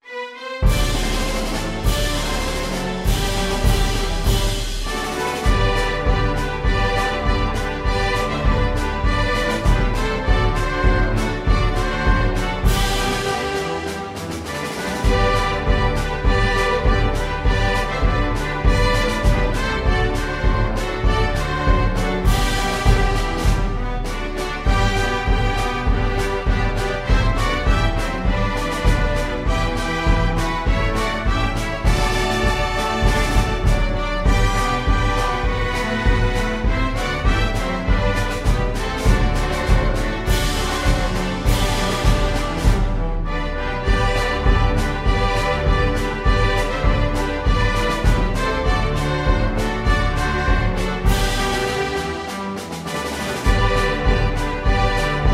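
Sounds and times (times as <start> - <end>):
flexible mixed ensemble of 4 players: 0.0 - 55.3.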